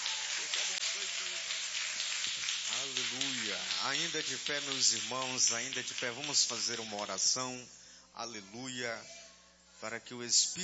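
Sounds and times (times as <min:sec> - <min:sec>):
faint voices and cheers: 0:00.0 - 0:01.4
audience applause: 0:00.0 - 0:07.1
speech: 0:02.9 - 0:09.2, 0:09.8 - 0:10.6.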